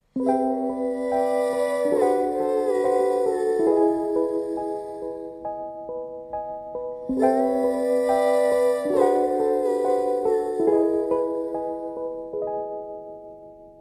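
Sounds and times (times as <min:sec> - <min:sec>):
a cappella singing: 0:00.2 - 0:05.4, 0:07.1 - 0:12.0.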